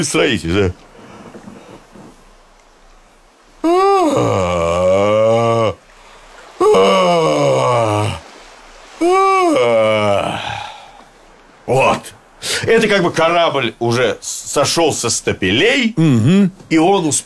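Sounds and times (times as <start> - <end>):
speech: 0.0 - 0.9, 12.8 - 17.2
long exaggerated yawn: 3.6 - 8.3, 9.0 - 11.1.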